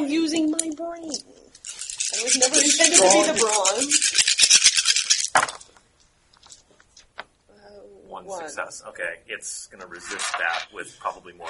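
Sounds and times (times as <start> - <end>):
dice being rolled: 1.1 - 5.8, 10.0 - 10.6
speech: 2.2 - 4.2, 8.3 - 11.4.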